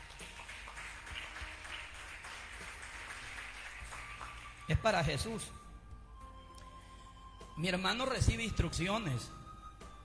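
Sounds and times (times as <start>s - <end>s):
audience applause: 0.0s - 4.7s
speech: 4.7s - 5.6s, 7.6s - 9.4s.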